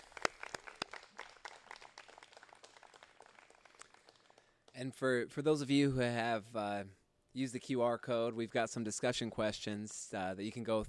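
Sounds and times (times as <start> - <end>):
crowd applauding: 0.0 - 4.6
speech: 4.8 - 10.8.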